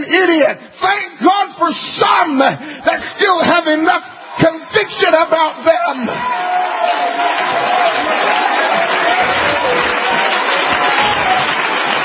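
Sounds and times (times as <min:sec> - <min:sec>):
speech: 0:00.1 - 0:10.4
audience clapping hands: 0:06.2 - 0:12.0.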